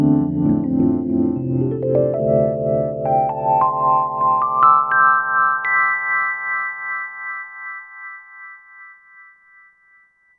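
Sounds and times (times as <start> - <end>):
Suitcase 88 electric piano on a synth expansion board: 0.0 - 7.6.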